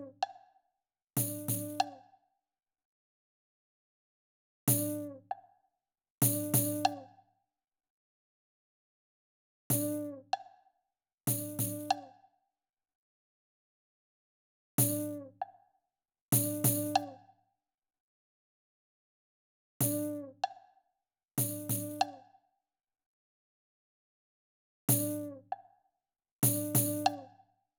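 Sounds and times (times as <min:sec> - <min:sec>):
percussion: 0:01.2 - 0:02.2, 0:04.7 - 0:05.6, 0:06.2 - 0:07.2, 0:09.7 - 0:10.6, 0:11.3 - 0:12.2, 0:14.8 - 0:15.7, 0:16.3 - 0:17.3, 0:19.8 - 0:20.7, 0:21.4 - 0:22.4, 0:24.9 - 0:25.8, 0:26.4 - 0:27.5.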